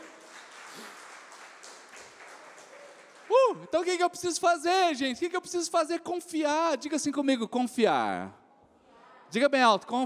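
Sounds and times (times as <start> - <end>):
applause: 0.0 - 3.9
speech: 3.5 - 8.4, 9.3 - 10.0.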